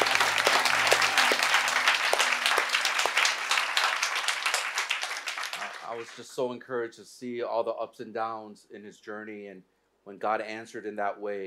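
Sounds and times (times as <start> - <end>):
audience applause: 0.0 - 6.3
speech: 6.0 - 11.4.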